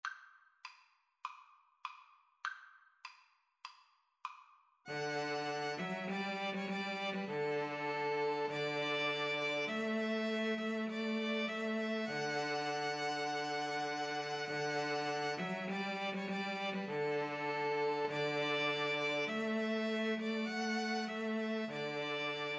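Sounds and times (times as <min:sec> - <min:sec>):
cello: 0:04.9 - 0:22.5
two violins: 0:04.9 - 0:22.5.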